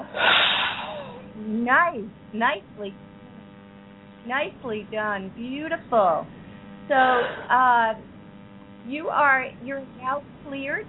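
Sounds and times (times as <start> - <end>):
deep breath blown out forcefully: 0.0 - 1.3
speech: 1.7 - 3.1, 4.2 - 8.1, 8.8 - 10.8.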